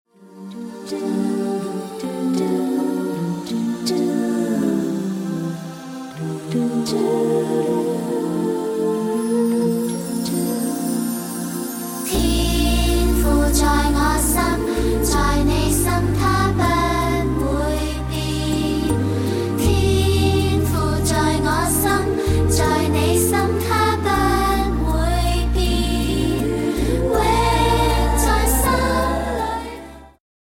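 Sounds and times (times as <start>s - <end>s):
children's song karaoke: 0.3s - 30.2s.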